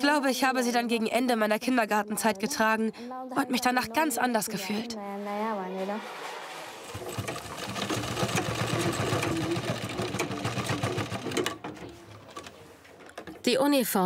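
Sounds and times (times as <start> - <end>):
speech: 0.1 - 6.3, 13.4 - 14.0
sewing machine stitching uniforms in a tailor's workshop: 6.8 - 13.4.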